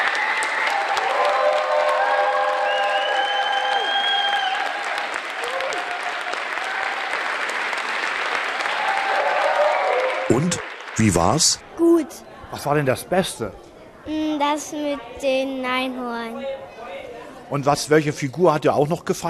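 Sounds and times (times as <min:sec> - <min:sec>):
children's audience applause: 0:00.0 - 0:11.6
speech: 0:10.4 - 0:16.8, 0:17.5 - 0:19.2.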